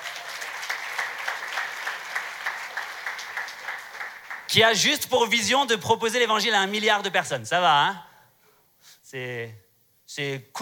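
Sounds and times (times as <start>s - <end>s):
crowd applause: 0.0s - 4.5s
speech: 4.5s - 8.1s, 9.1s - 10.5s.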